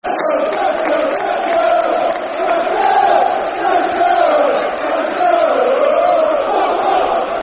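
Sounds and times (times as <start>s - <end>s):
football crowd chanting soccer songs: 0.0s - 7.4s.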